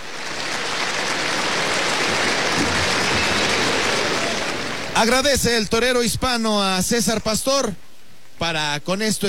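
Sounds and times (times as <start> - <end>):
bullring crowd ovation and applause: 0.0 - 5.7
speech: 5.0 - 7.8, 8.4 - 9.2.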